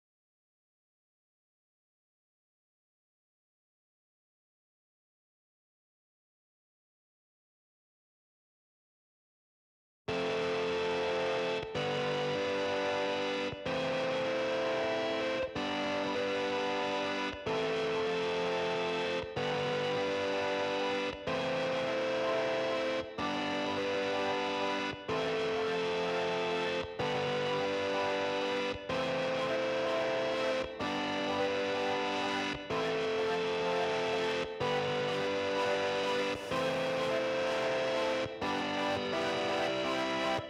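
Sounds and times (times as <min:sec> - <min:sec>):
dirty synth chords: 0:10.2 - 0:40.4.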